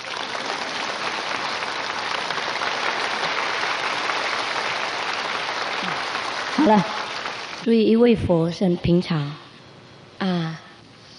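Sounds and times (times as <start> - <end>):
audience clapping: 0.0 - 7.7
speech: 6.6 - 7.0, 7.6 - 9.4, 10.2 - 10.6.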